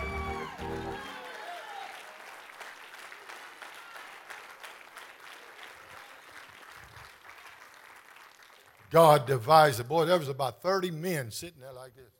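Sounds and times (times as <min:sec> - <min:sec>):
audience clapping: 0:00.0 - 0:09.5
speech: 0:08.9 - 0:12.1.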